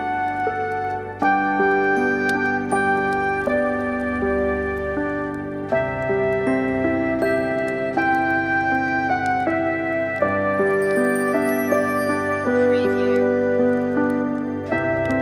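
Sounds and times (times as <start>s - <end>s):
relaxing Christmas on-hold music: 0.0s - 15.2s.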